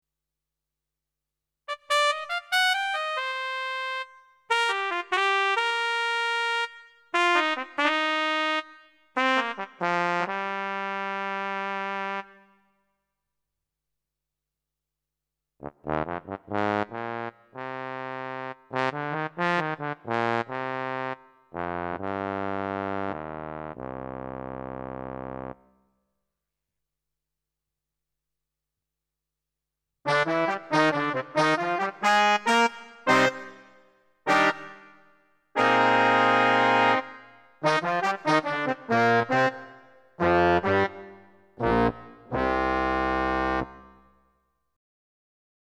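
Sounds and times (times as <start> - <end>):
brass instruments: 1.7 - 12.6, 15.6 - 25.7, 30.1 - 44.0.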